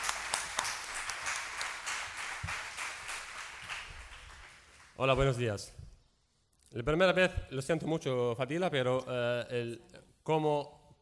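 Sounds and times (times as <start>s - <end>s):
audience applause: 0.0s - 5.0s
speech: 5.0s - 5.8s, 6.8s - 10.8s.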